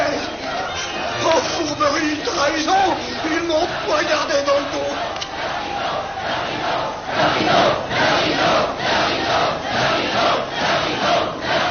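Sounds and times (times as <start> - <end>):
theatre audience crowd clamoring and shouting: 0.0 - 11.6.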